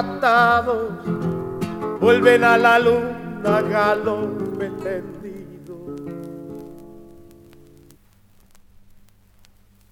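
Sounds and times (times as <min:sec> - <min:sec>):
person singing zamba: 0:00.0 - 0:01.2, 0:02.0 - 0:06.3
guitar playing zamba: 0:00.0 - 0:09.0.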